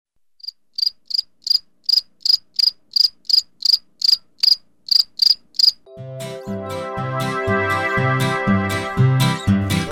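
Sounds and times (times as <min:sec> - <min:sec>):
grasshopper chirping: 0:00.4 - 0:05.8
music: 0:05.9 - 0:09.9.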